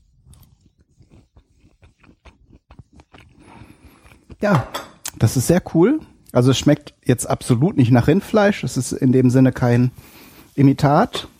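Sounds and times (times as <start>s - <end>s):
person biting into and chewing a black bean burger: 0.0s - 5.2s
speech: 4.4s - 11.3s.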